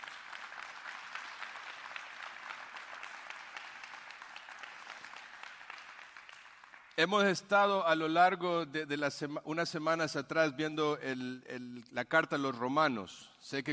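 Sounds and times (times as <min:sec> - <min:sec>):
audience applause: 0:00.0 - 0:07.0
speech: 0:07.0 - 0:13.7.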